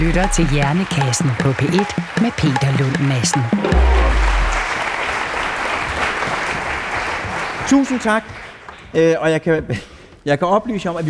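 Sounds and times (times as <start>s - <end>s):
audience applause: 0.0s - 9.0s
speech: 0.1s - 4.3s, 7.7s - 11.0s.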